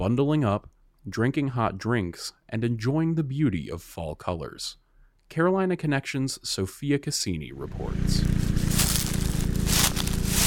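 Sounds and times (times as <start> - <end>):
speech: 0.0 - 8.6
footsteps rustling and crunching dry leaves: 8.0 - 10.4.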